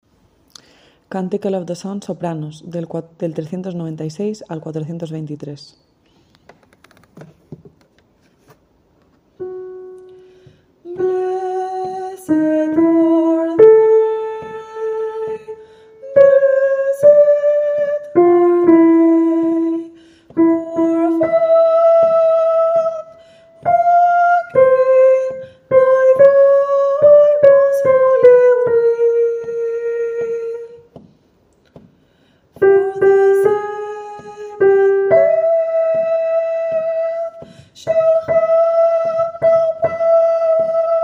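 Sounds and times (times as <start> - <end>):
soprano singing: 9.4 - 31.0, 32.6 - 41.0.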